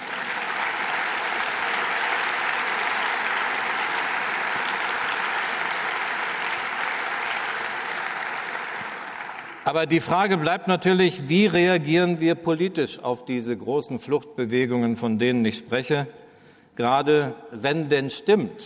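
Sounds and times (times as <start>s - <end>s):
lecture audience applause: 0.0s - 9.8s
speech: 9.7s - 16.2s, 16.8s - 18.6s.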